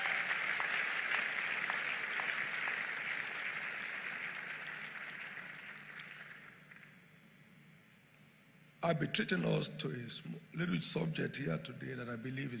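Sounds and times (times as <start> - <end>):
audience applause: 0.0 - 7.0
speech: 8.8 - 12.5.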